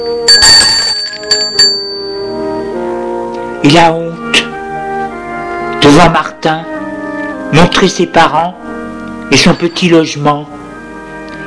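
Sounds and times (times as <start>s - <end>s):
doorbell ringing at apartment door: 0.0s - 2.6s, 9.4s - 10.3s
speech: 3.6s - 4.1s, 5.8s - 6.8s, 7.5s - 8.7s, 9.3s - 10.6s.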